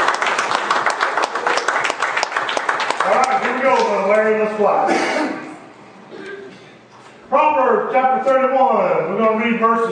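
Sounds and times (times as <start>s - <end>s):
audience applause: 0.0s - 4.0s
speech: 3.6s - 5.4s, 7.9s - 9.9s.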